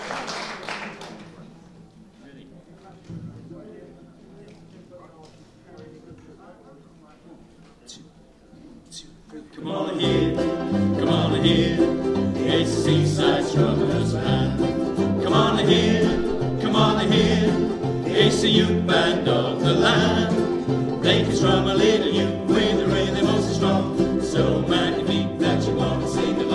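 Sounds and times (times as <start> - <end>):
ukulele band strumming: 9.5 - 26.5.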